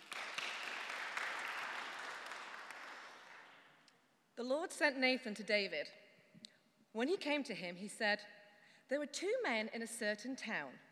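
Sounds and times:
audience applause for a woman about to give a Bible reading: 0.0s - 3.6s
speech: 4.4s - 6.0s, 6.9s - 10.9s.

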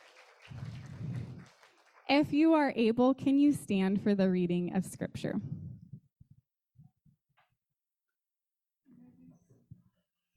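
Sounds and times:
audience applause: 0.0s - 2.1s
speech: 2.1s - 5.6s.

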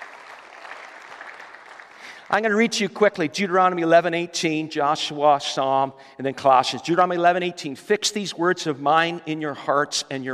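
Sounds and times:
audience clapping: 0.0s - 2.6s
speech: 2.3s - 10.3s.

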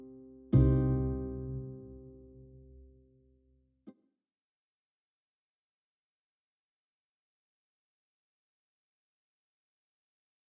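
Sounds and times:
blues music by the campfire: 0.5s - 2.5s.

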